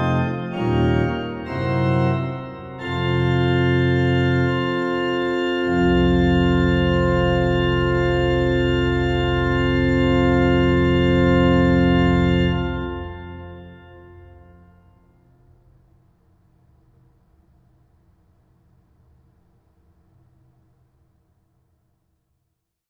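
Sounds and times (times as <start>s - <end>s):
organ capriccio: 0.0s - 15.1s.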